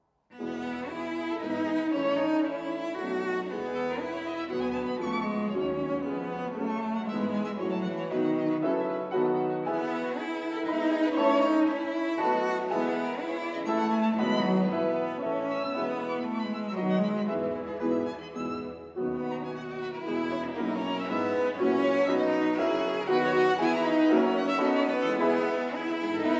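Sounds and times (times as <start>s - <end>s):
piano trio: 0.5s - 26.3s.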